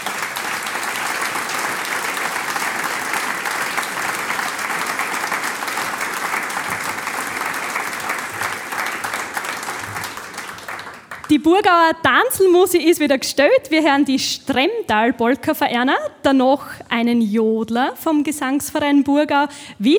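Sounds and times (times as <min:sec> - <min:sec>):
audience applause: 0:00.0 - 0:11.3
speech: 0:11.3 - 0:19.9.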